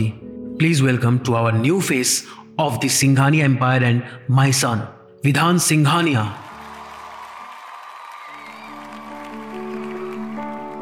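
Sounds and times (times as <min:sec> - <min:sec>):
speech: 0:00.0 - 0:06.4
thunderous applause: 0:06.4 - 0:10.8.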